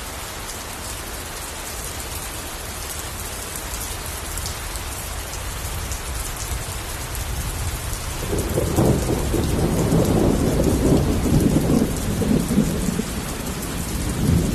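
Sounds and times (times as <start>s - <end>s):
rain hissing: 6.6s - 14.5s
thunder rumbling: 7.8s - 14.5s.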